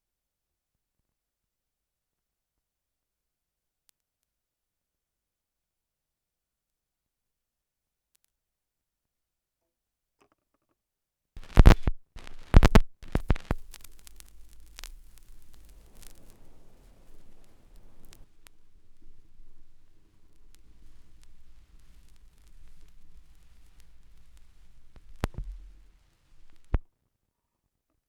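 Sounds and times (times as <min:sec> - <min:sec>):
vinyl record noise: 0:11.4 - 0:26.8.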